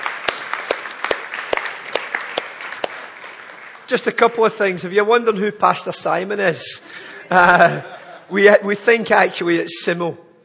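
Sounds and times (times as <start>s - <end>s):
round of applause: 0.0s - 4.7s
speech: 3.9s - 10.2s
laughter: 6.8s - 8.5s.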